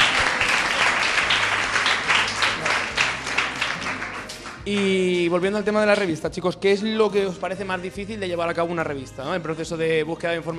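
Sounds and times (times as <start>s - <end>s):
audience applause: 0.0s - 5.0s
speech: 4.7s - 10.5s.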